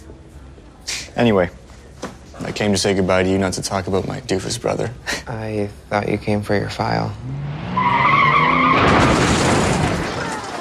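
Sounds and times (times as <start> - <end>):
speech: 1.2 - 1.6, 2.4 - 7.6
car skidding: 7.2 - 10.5.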